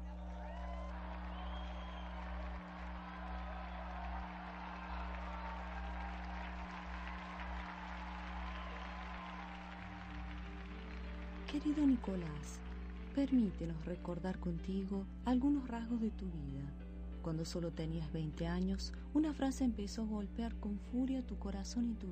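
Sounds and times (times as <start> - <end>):
audience applause: 0.0 - 13.7
constant low electrical hum: 0.0 - 22.1
speech: 11.5 - 22.1.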